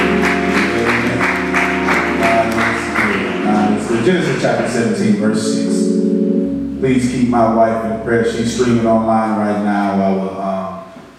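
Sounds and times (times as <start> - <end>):
audience round of applause: 0.0 - 5.0
speech: 4.0 - 5.8, 6.8 - 10.6.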